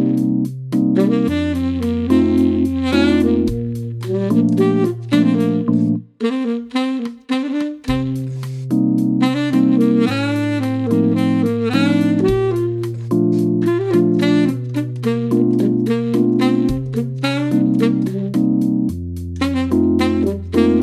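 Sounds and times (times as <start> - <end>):
jazz music: 0.0 - 20.8.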